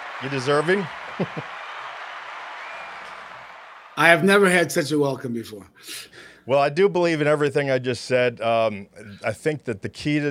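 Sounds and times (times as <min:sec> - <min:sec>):
applause sound effect: 0:00.0 - 0:04.0
speech: 0:00.2 - 0:01.6, 0:04.0 - 0:10.3.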